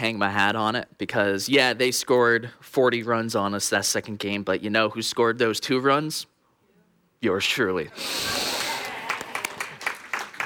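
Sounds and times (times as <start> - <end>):
speech: 0.0 - 6.3, 7.2 - 8.6
group of people clapping for a team after a loss: 8.3 - 10.4.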